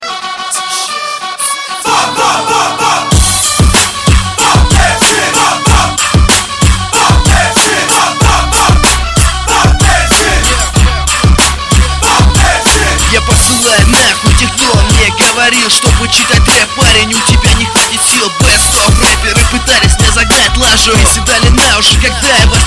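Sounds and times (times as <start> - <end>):
rap bass: 0.1 - 22.6.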